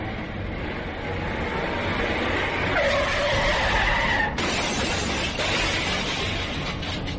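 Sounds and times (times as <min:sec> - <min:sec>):
truck engine roar: 0:00.0 - 0:07.1
truck loaded with iron building materials braking suddenly, brakes squealing: 0:02.7 - 0:06.3
truck slamming into a car in front of a salon, crash with shattering: 0:04.4 - 0:07.1.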